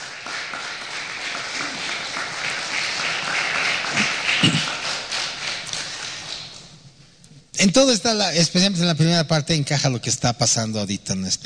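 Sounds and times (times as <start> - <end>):
audience applause: 0.0 - 6.6
speech: 7.6 - 11.4.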